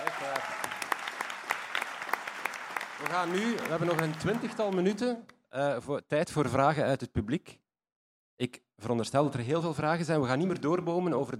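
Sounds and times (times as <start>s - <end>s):
audience applause for a singer at a history talk: 0.0s - 5.1s
speech: 3.0s - 7.6s, 8.4s - 11.3s.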